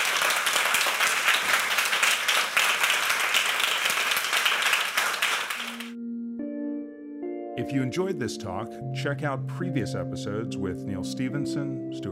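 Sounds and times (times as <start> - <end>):
audience round of applause: 0.0 - 6.0
speech: 7.6 - 12.1.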